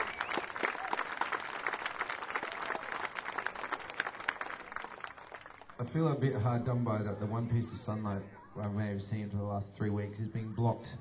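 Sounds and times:
audience applause: 0:00.0 - 0:05.8
speech: 0:05.8 - 0:10.9.

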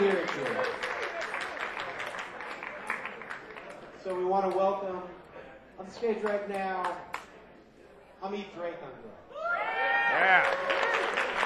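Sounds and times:
small audience applause at a live music concert: 0:00.0 - 0:03.9, 0:10.1 - 0:11.4
speech: 0:04.4 - 0:05.2, 0:05.8 - 0:07.1, 0:08.2 - 0:09.3, 0:10.2 - 0:11.4.

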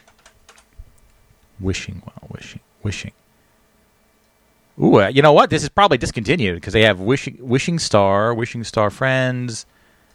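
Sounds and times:
typing a search on a computer keyboard: 0:00.0 - 0:01.2
speech: 0:01.6 - 0:03.2, 0:04.8 - 0:09.8.

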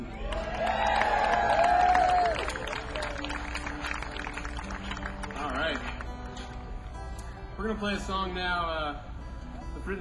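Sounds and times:
audience applauding and cheering: 0:00.0 - 0:06.1
speech: 0:07.7 - 0:09.1.

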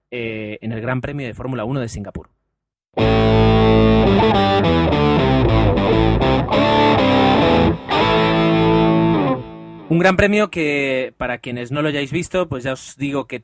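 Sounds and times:
speech: 0:00.1 - 0:02.3, 0:03.0 - 0:07.1, 0:09.9 - 0:13.4
heavily distorted electric guitar chords: 0:03.0 - 0:09.9.

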